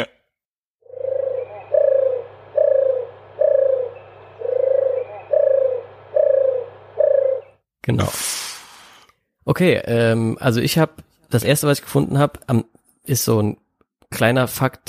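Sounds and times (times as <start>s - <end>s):
turtle dove call: 0.8s - 7.6s
speech: 7.9s - 8.5s, 9.5s - 14.8s.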